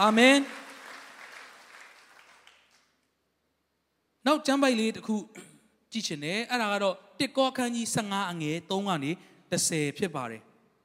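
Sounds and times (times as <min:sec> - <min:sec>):
speech: 0:00.0 - 0:00.6, 0:04.2 - 0:10.5
congregation clapping hands in praise during a church service: 0:00.0 - 0:03.1.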